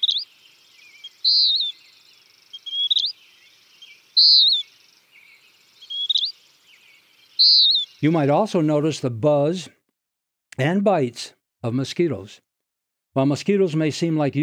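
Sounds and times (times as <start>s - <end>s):
western wood pewee song: 0.0s - 8.8s
speech: 1.3s - 1.7s, 7.6s - 9.8s, 10.6s - 12.5s, 13.2s - 14.4s.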